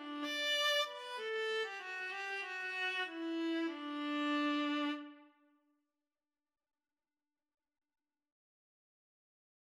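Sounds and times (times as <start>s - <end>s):
viola and cello duet: 0.0s - 5.2s.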